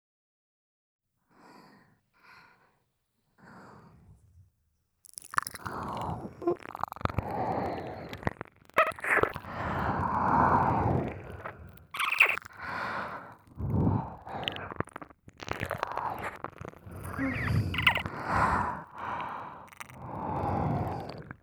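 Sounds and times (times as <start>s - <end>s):
relaxing ASMR ear licking with finger insertion: 5.0s - 21.4s.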